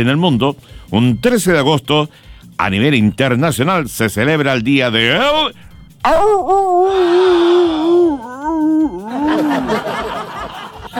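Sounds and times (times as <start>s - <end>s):
speech: 0.0s - 10.2s
wolf howling: 6.0s - 9.8s
laughter: 8.8s - 10.9s.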